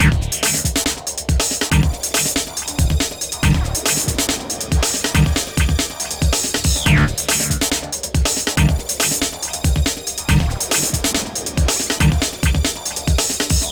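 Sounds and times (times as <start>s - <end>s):
groove music: 0.0s - 13.6s.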